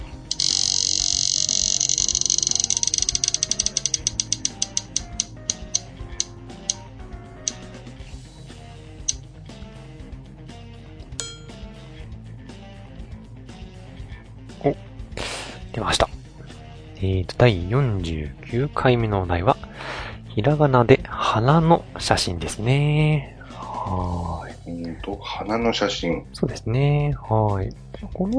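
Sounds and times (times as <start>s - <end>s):
roulette wheel sound effect ticking: 0.3s - 6.8s
speech: 17.0s - 19.6s, 20.4s - 28.3s.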